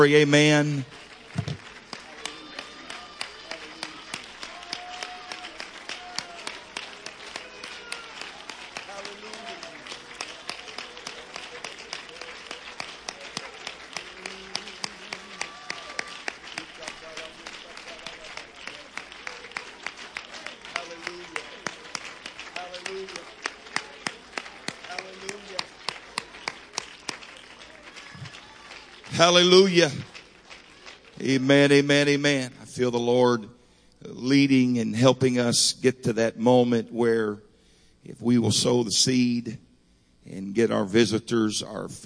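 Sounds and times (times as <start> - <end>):
speech: 0.0 - 1.6, 29.3 - 30.1, 31.2 - 39.6, 40.2 - 42.0
scattered voices and cheers: 0.0 - 31.9
audience clapping: 0.0 - 33.4.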